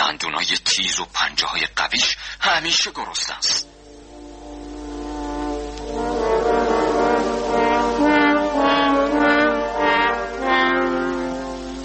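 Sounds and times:
speech: 0:00.5 - 0:03.8
three horns playing a theme: 0:03.6 - 0:11.8.

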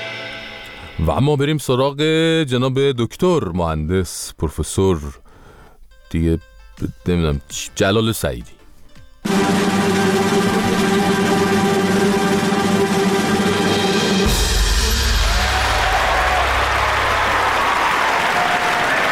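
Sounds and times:
speech: 0:01.0 - 0:05.2, 0:06.1 - 0:08.6, 0:09.2 - 0:10.0
crowd applause: 0:09.3 - 0:19.1
crowd screaming and cheering: 0:14.1 - 0:19.1.

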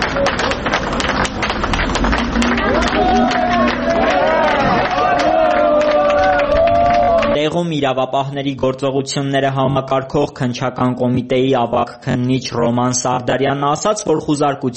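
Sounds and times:
crowd applause outside a Founding Parliament office after a police search: 0:00.0 - 0:07.4
speech: 0:07.6 - 0:14.7.

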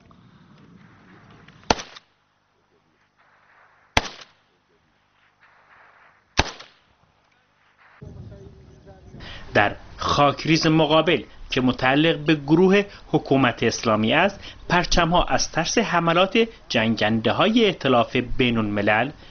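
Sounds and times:
low rumble: 0:00.0 - 0:19.2
gunshots fired toward enemy positions: 0:00.8 - 0:02.2, 0:03.2 - 0:09.0
speech: 0:09.6 - 0:19.2.

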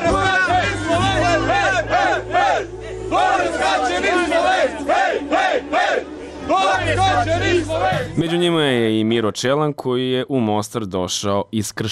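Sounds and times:
crowd roar at a ski jumping event: 0:00.0 - 0:08.2
Slovenian fans cheering and chanting at a ski jumping event in Mostar: 0:00.0 - 0:08.5
speech: 0:05.5 - 0:11.9.

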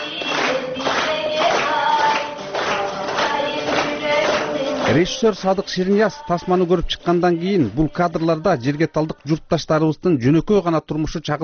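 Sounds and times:
cinema audience clapping along to a song: 0:00.0 - 0:06.6
young woman singing a song: 0:00.0 - 0:08.9
speech: 0:04.9 - 0:11.4.

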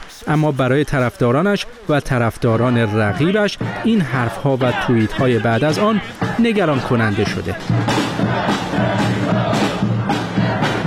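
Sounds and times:
speech: 0:00.2 - 0:09.1
crowd of Biden supporters shouting at rally in New York: 0:02.5 - 0:10.8.

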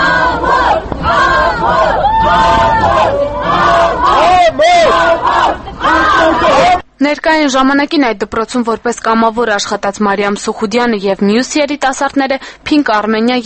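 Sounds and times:
crowd with placards in a courthouse yard shouting at a defendant: 0:00.0 - 0:06.8
speech: 0:07.3 - 0:13.4.

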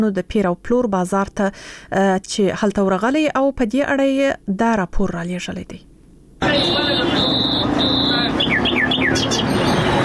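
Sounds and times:
speech: 0:00.0 - 0:07.1
constant noise: 0:00.0 - 0:10.0
wild birds chirping at a bird market in Kandahar: 0:07.4 - 0:09.8.

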